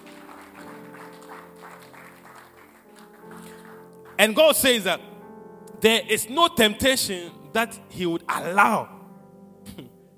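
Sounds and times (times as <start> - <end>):
audience clapping: 0.0 - 4.5
speech: 4.2 - 5.1, 5.8 - 8.9.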